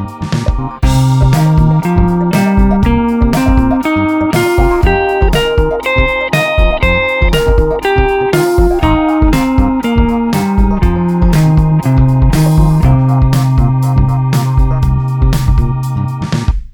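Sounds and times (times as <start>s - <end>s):
improvised guitar: 0.0s - 16.3s.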